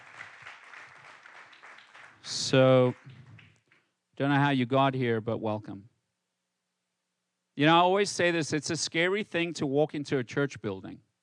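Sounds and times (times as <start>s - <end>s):
audience applause: 0.0s - 3.6s
speech: 2.3s - 3.1s, 4.2s - 5.9s, 7.6s - 11.1s.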